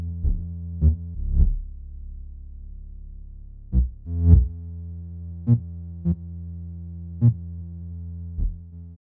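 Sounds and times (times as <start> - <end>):
swing bass line: 0.0 - 4.6.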